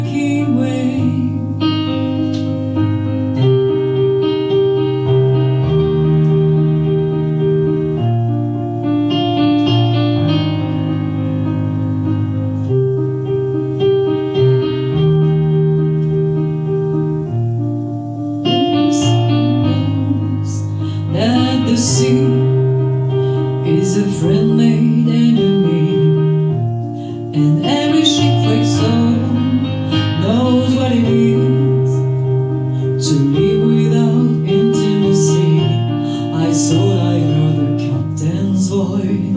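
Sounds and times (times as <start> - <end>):
person singing: 0.0 - 6.6, 18.4 - 39.3
piano: 0.0 - 39.3.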